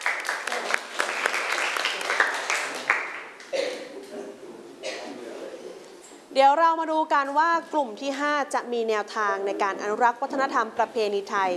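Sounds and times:
students clapping: 0.0 - 3.5
speech: 6.4 - 11.5.

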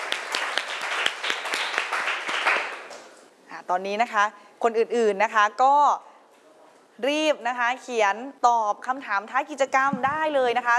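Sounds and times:
applause: 0.0 - 3.2
speech: 3.7 - 6.1, 7.0 - 10.7.

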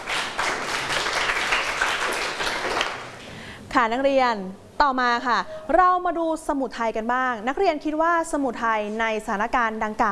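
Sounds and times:
students clapping for themselves: 0.0 - 3.2
speech: 3.8 - 10.1.

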